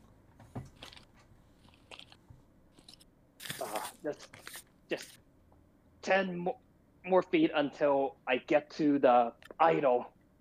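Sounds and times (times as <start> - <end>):
paper crinkled to imitate a crackling fire: 0.6 - 5.2
speech: 4.0 - 5.2, 6.0 - 10.2.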